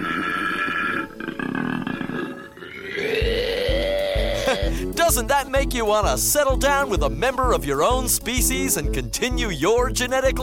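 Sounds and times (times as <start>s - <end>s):
koala mating bellow grunting: 0.0s - 4.7s
speech: 4.7s - 10.4s.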